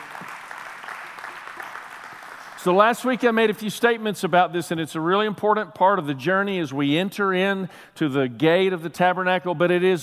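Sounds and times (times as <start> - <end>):
audience clapping: 0.0 - 3.2
speech: 2.6 - 10.0.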